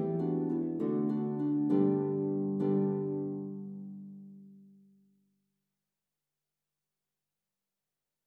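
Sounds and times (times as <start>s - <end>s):
harp duet: 0.0s - 4.2s.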